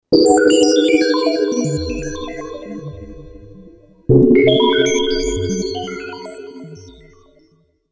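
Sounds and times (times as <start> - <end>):
Alesis Fusion FM synth: 0.2 - 6.5.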